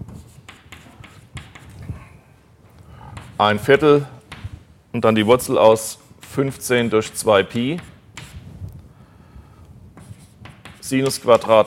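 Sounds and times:
pen strokes writing formulas during a maths lesson: 0:00.1 - 0:01.8, 0:07.6 - 0:08.4, 0:10.0 - 0:11.6
speech: 0:03.4 - 0:04.2, 0:05.0 - 0:07.9, 0:10.9 - 0:11.6.

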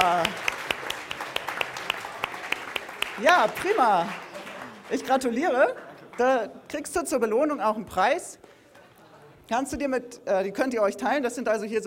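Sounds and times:
audience applause: 0:00.0 - 0:06.3
speech: 0:03.2 - 0:04.2, 0:04.9 - 0:08.4, 0:09.5 - 0:11.8.

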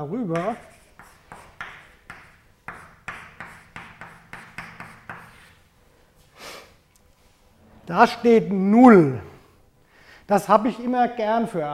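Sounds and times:
speech: 0:00.0 - 0:00.7, 0:07.9 - 0:09.3, 0:10.3 - 0:11.7
scratchy strokes handwriting an equation of motion: 0:00.3 - 0:05.6.

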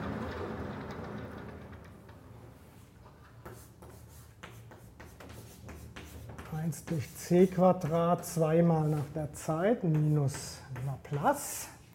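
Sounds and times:
writing tool scratching as someone writes a physics formula: 0:03.4 - 0:11.3
speech: 0:06.6 - 0:11.7.

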